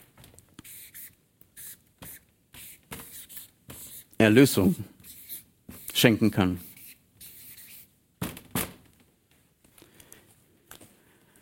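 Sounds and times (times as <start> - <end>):
writing a word by hand: 0.6 - 7.9
speech: 4.2 - 4.9, 6.0 - 6.7.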